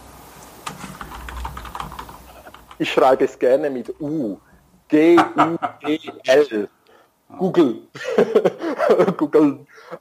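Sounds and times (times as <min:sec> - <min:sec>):
typing on a computer keyboard to look up a word online: 0:00.6 - 0:02.9
speech: 0:02.8 - 0:09.9
laughter: 0:05.0 - 0:06.3, 0:08.0 - 0:09.3.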